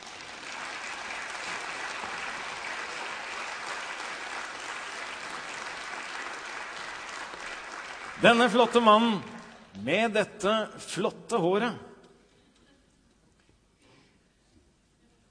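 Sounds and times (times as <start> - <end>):
audience applause: 0.0 - 9.7
speech: 8.2 - 11.9.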